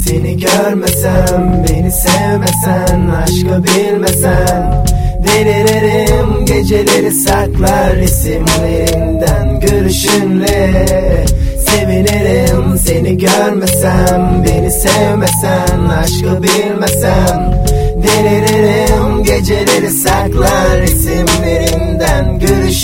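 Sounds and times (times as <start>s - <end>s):
Turkish rap: 0.0s - 22.8s.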